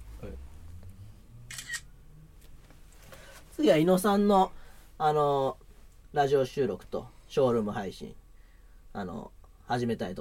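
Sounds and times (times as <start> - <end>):
speech: 0.2 - 0.5, 3.6 - 8.2, 9.0 - 10.1
camera shutter clicking for a two-shot photo: 1.5 - 1.9.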